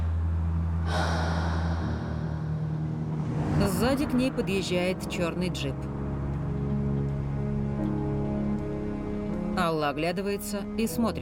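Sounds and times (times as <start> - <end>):
steady low droning hum: 0.0 - 8.3
woman breathing heavily leaning on a roadside barrier: 0.8 - 3.3
speech: 3.8 - 6.0, 9.6 - 11.2.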